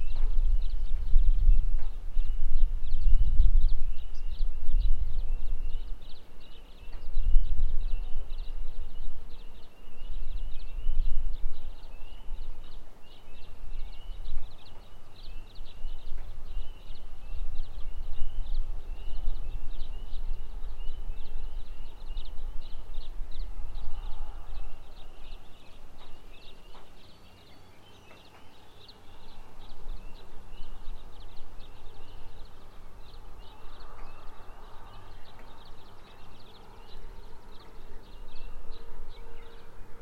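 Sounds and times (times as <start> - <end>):
birds singing at dawn: 0.0 - 40.0.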